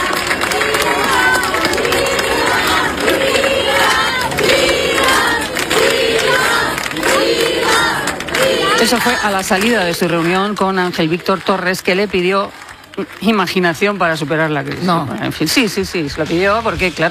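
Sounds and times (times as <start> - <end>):
crowd applause and cheering: 0.0 - 17.1
speech: 8.9 - 17.1.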